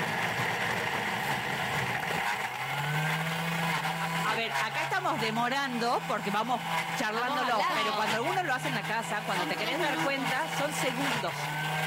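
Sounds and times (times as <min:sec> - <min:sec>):
Thermomix food processor crushing strawberries at 10,000 rpm: 0:00.0 - 0:11.8
speech: 0:05.0 - 0:11.7.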